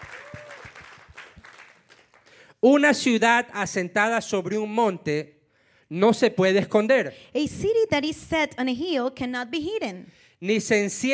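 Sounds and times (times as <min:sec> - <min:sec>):
church congregation clapping for the Lord: 0:00.0 - 0:02.6
speech: 0:02.6 - 0:11.1.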